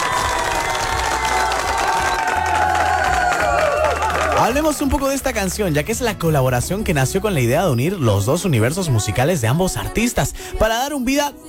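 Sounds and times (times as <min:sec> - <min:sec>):
shouts and whoops: 0:00.0 - 0:04.8
crowd applause: 0:00.0 - 0:05.4
speech: 0:04.5 - 0:11.4.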